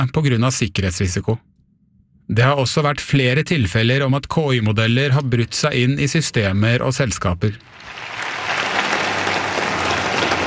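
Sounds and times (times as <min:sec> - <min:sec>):
speech: 0:00.0 - 0:01.5, 0:02.3 - 0:08.3
crowd applause and cheering: 0:07.6 - 0:10.4.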